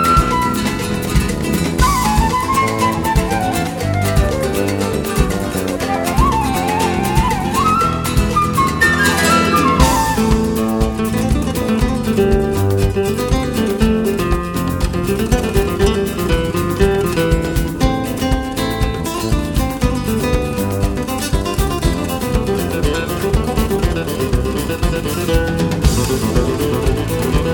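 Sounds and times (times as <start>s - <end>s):
classical guitar: 0.0s - 27.5s.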